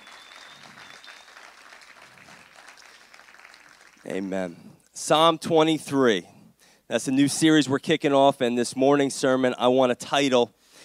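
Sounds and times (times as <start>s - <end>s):
round of applause: 0.0s - 4.1s
speech: 4.0s - 6.3s, 6.9s - 10.6s.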